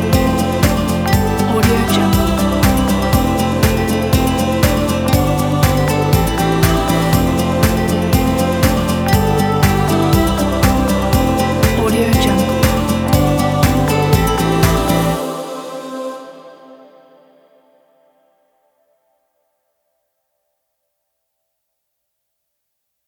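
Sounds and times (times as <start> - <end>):
indie folk music: 0.0 - 16.1.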